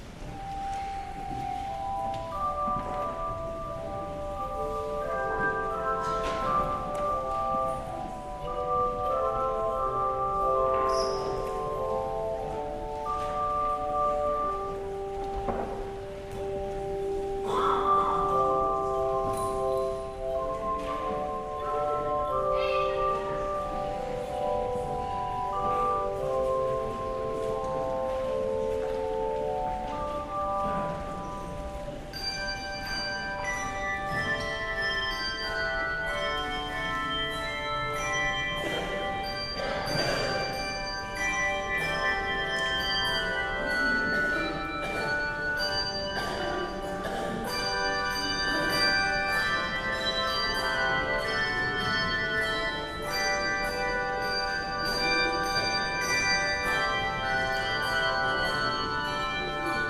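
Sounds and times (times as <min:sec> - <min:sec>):
handbells: 0:00.0 - 0:59.8.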